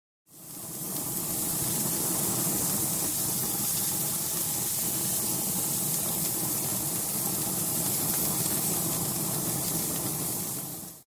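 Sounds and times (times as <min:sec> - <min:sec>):
barbecue sizzling: 0:00.3 - 0:11.0.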